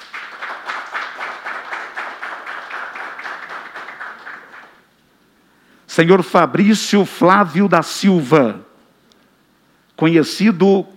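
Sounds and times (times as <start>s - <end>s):
round of applause: 0.0s - 4.9s
speech: 6.0s - 8.7s, 10.0s - 10.9s.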